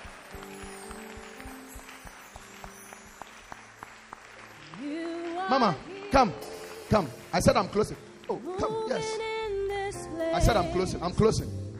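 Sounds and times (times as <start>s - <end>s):
crowd clapping hands: 0.0s - 8.8s
speech: 5.5s - 8.1s, 8.9s - 9.4s, 10.4s - 11.6s.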